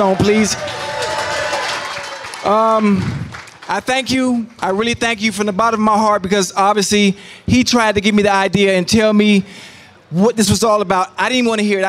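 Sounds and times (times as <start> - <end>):
speech: 0.0 - 0.9, 2.4 - 11.8
audience applause: 0.0 - 3.7.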